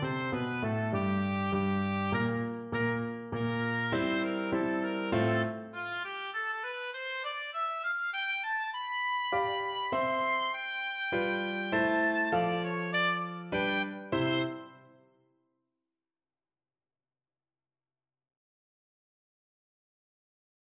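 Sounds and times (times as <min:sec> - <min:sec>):
oboe: 0:00.0 - 0:14.9.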